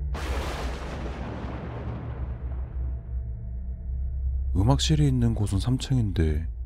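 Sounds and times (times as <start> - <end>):
thunder crash: 0.2 - 3.3
speech: 4.6 - 6.6.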